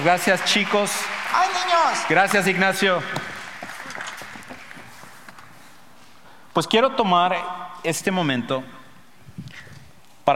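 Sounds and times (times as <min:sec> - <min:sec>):
speech: 0:00.0 - 0:03.3, 0:06.6 - 0:08.8
children applauding: 0:00.0 - 0:05.2.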